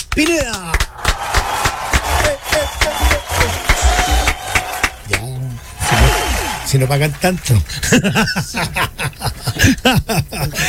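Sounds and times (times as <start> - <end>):
speech: 0.2 - 1.1, 6.7 - 10.6
applause: 0.7 - 7.0
laughter: 0.9 - 10.6.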